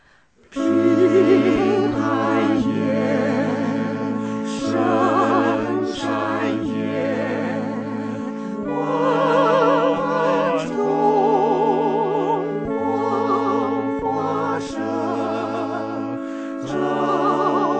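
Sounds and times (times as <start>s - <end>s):
four-part choir singing a Christmas carol: 0.5s - 17.7s.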